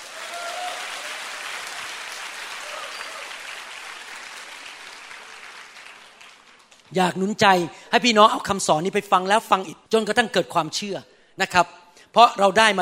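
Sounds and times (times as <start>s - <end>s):
audience applauding: 0.0s - 6.9s
speech: 6.9s - 12.8s.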